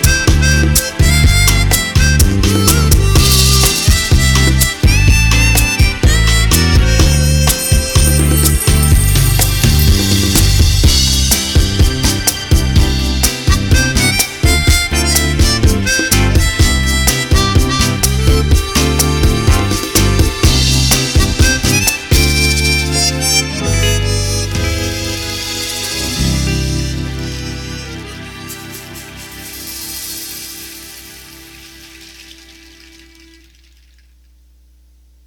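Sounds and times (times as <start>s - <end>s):
eight beat drum pattern from a Roland BK-7m: 0.0s - 26.2s.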